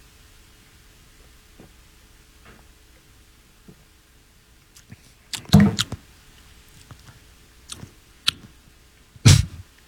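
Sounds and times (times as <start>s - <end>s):
wet lip smacking from someone tasting beer: 4.8s - 6.0s, 6.7s - 8.6s.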